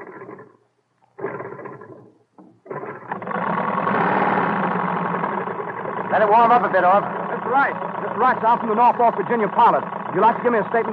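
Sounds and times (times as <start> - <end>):
Wright brothers' airplane engine being cranked and started, propellers running: 2.7 - 10.9
speech: 6.2 - 10.9.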